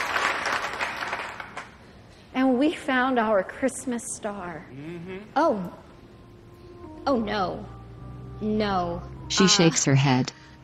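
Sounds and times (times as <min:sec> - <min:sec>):
hearty clapping: 0:00.0 - 0:01.8
speech: 0:02.6 - 0:05.9, 0:07.0 - 0:07.8, 0:08.4 - 0:10.4.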